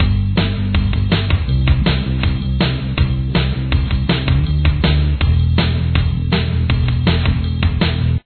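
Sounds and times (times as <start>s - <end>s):
bass: 0.0s - 8.2s.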